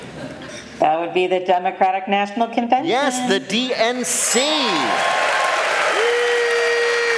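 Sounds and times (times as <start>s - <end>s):
speech: 0.8s - 5.2s
crowd at the Democratic National Convention in Chicago applauding and cheering: 4.2s - 7.1s.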